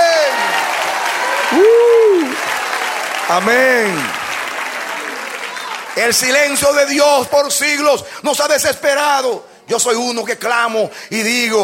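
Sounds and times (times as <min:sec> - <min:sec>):
crowd audience applause: 0:00.0 - 0:06.7
speech: 0:03.3 - 0:04.2, 0:06.0 - 0:11.6.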